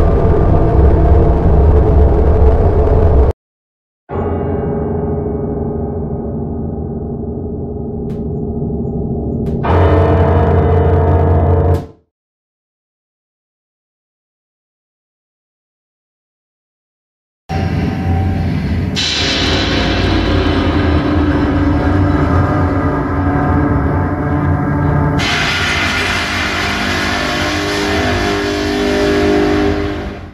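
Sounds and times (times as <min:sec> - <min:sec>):
scary horror sound effects: 0:00.0 - 0:03.3, 0:04.1 - 0:11.9, 0:17.5 - 0:30.3.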